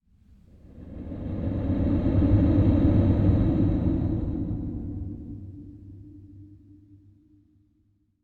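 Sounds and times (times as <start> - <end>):
horror whoosh: 0.7 - 6.4.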